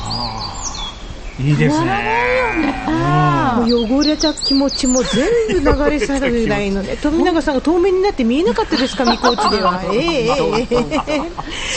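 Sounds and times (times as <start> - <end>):
birds calling in spring forest near Kamikochi: 0.0 - 1.6, 3.5 - 5.8, 8.6 - 9.9
forest ambience beside the Azusa River: 0.0 - 11.7
speech: 1.4 - 11.7
laughter: 1.5 - 3.9, 4.9 - 7.4, 8.4 - 11.7.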